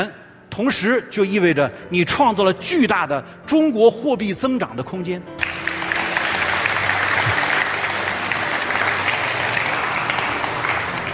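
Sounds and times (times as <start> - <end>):
speech: 0.0 - 5.8
audience applause: 5.4 - 11.1.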